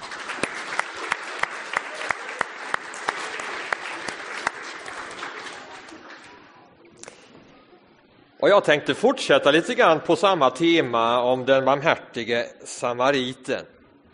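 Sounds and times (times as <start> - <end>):
audience applause: 0.0 - 6.5
speech: 8.4 - 13.8.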